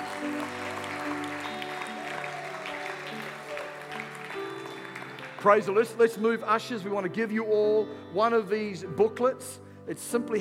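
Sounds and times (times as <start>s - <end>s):
crowd applauding: 0.0s - 6.7s
speech: 5.4s - 10.3s.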